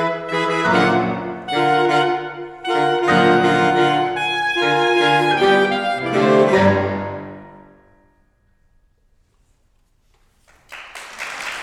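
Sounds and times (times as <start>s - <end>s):
saxophone quartet concerto: 0.0s - 7.9s.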